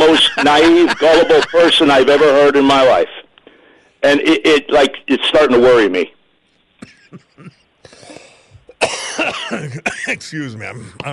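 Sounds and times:
laughter: 0.0s - 2.9s, 6.8s - 8.0s
speech: 0.4s - 3.2s, 4.0s - 6.2s, 7.1s - 7.6s, 8.8s - 11.1s
man coughing and choking: 6.8s - 10.2s.

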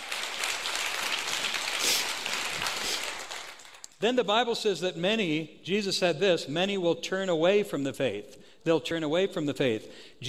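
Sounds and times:
crowd of people clapping: 0.0s - 4.0s
speech: 4.0s - 10.2s.

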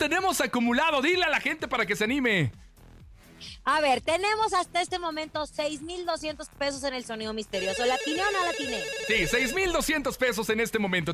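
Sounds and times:
speech: 0.0s - 2.6s, 3.4s - 11.1s
telephone ringing for incoming call: 7.6s - 9.9s.

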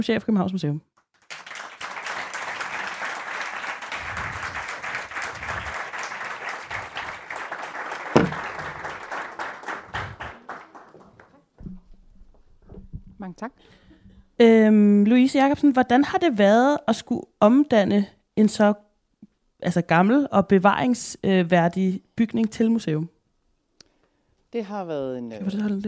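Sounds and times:
speech: 0.0s - 0.9s, 14.4s - 18.8s, 19.6s - 23.2s, 24.5s - 25.8s
audience applause for a Copenhagen Museum director: 1.2s - 11.5s.

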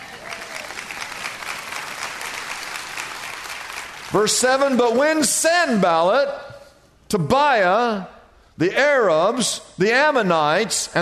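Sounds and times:
audience clapping: 0.0s - 5.8s
speech: 4.1s - 6.5s, 7.1s - 11.0s.

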